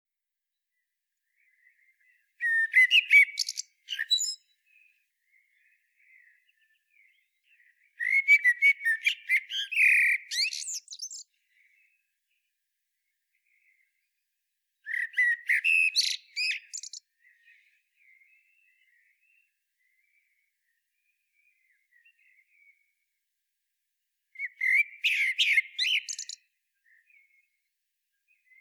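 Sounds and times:
common blackbird singing: 1.2 - 12.0, 14.8 - 20.8, 24.4 - 27.6, 28.3 - 28.5.

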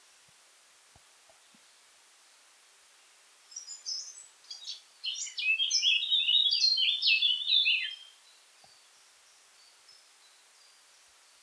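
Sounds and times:
Eurasian blackcap singing: 3.7 - 8.1.

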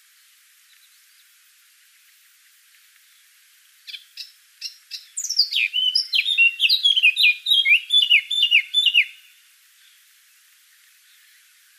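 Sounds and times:
Eurasian blackcap Sylvia atricapilla warbling song: 3.9 - 9.3.

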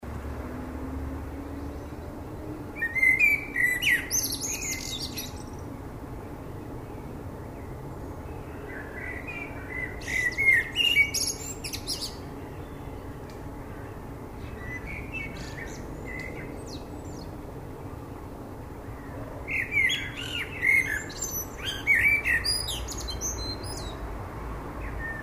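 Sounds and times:
common blackbird singing: 2.8 - 5.7, 6.9 - 17.4, 18.9 - 24.0.

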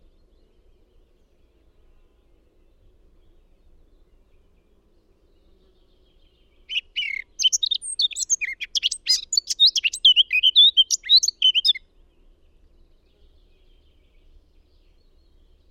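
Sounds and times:
Eurasian blackcap Sylvia atricapilla warbling: 6.7 - 11.8.

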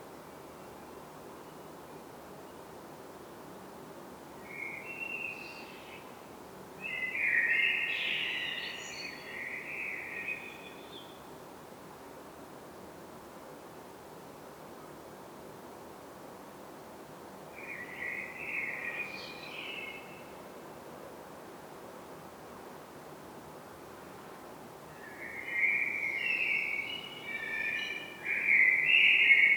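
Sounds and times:
common blackbird warbled song: 6.8 - 11.2, 17.6 - 20.3, 24.9 - 29.5.

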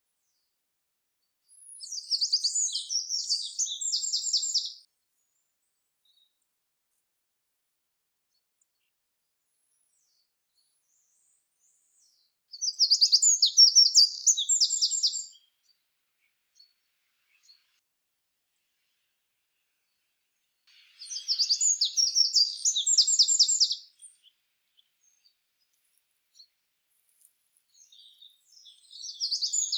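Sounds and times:
Eurasian wren singing: 1.6 - 4.8, 12.5 - 15.4, 20.7 - 24.3, 27.8 - 29.7.

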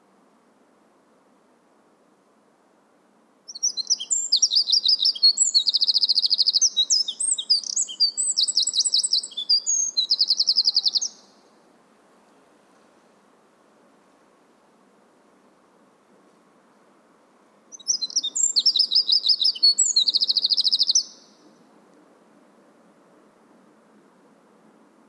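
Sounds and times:
Eurasian wren singing shrill notes and rattling trills: 3.5 - 11.4, 17.7 - 21.4.

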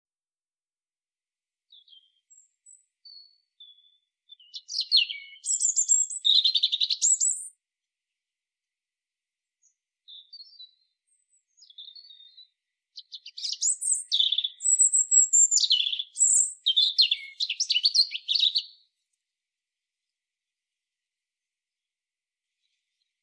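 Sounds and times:
European robin song: 1.7 - 7.6, 9.6 - 18.9.

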